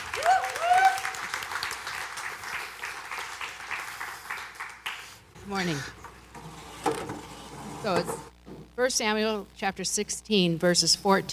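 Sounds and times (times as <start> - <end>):
crowd clapping in a large room: 0.0 - 5.2
rising whistle or cheer: 0.1 - 1.2
speech: 5.5 - 6.0, 7.8 - 11.3.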